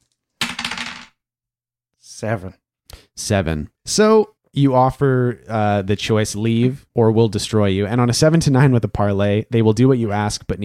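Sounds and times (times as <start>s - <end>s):
dice rolling across a surface: 0.0s - 1.2s
speech: 2.0s - 2.6s, 3.2s - 10.6s.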